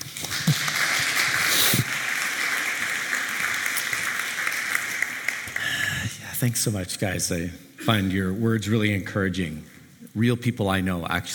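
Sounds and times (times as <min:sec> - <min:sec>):
audience applause: 0:00.4 - 0:05.8
speech: 0:06.4 - 0:11.3.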